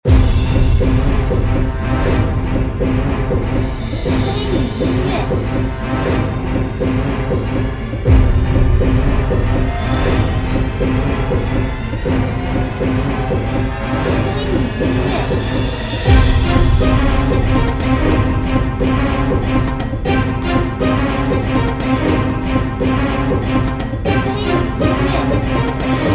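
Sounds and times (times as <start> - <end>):
intense tense battle music: 0.0 - 26.1.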